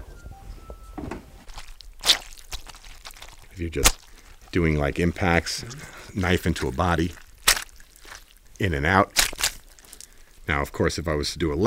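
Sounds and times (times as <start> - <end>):
chamois cloth soaked with water squishing: 1.4 - 10.5
speech: 3.6 - 7.2, 8.6 - 9.2, 10.5 - 11.6.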